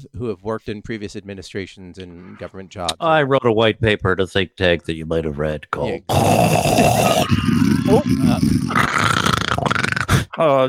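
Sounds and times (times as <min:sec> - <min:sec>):
speech: 0:00.0 - 0:09.3, 0:10.4 - 0:10.6
voice imitating snoring: 0:06.0 - 0:10.6.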